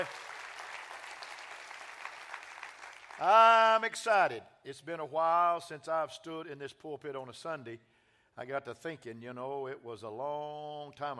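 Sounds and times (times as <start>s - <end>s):
speech: 0.0s - 0.3s, 3.2s - 11.1s
church congregation in Tulsa clapping: 0.0s - 3.9s.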